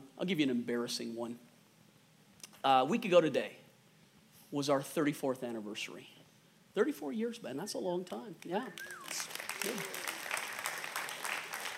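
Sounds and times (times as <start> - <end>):
speech: 0.2 - 1.5, 2.6 - 3.6, 4.5 - 6.2, 6.8 - 10.0
weak clapping from church audience: 8.8 - 11.7.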